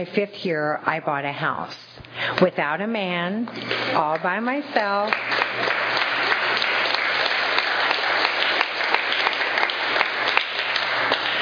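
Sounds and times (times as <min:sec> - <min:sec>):
speech: 0:00.0 - 0:06.0
audience applause: 0:04.8 - 0:11.3.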